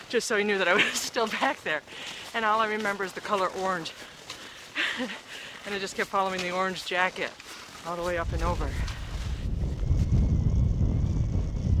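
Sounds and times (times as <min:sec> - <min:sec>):
speech: 0:00.1 - 0:04.1, 0:05.0 - 0:08.8
strong freezing wind on the summit of North Twin buffeting the microphone: 0:08.1 - 0:11.7.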